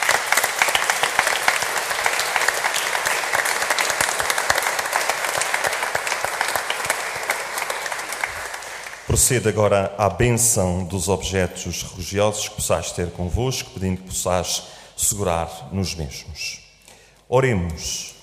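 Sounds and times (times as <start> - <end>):
audience applause: 0.0 - 9.2
speech: 9.2 - 16.6, 17.3 - 18.1.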